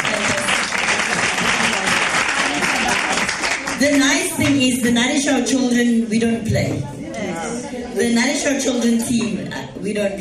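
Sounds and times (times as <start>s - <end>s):
crowd applauding: 0.0s - 4.0s
speech: 3.8s - 7.0s, 8.0s - 10.1s.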